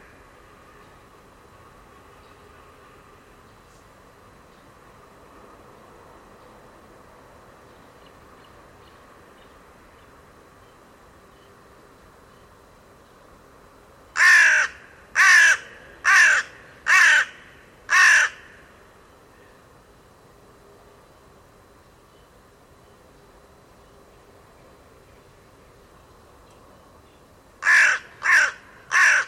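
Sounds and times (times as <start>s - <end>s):
bird giving harsh crow-like caws: 14.2s - 18.7s, 27.6s - 29.2s.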